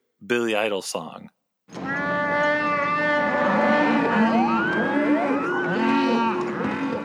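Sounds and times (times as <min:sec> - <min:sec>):
speech: 0:00.2 - 0:01.8
Wookiee yell sound effect: 0:01.8 - 0:07.0.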